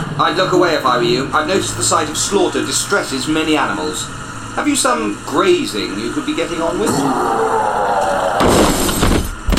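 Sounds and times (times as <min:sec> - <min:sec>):
speech: 0:00.2 - 0:08.9
lorry crashing into someone: 0:08.3 - 0:09.4.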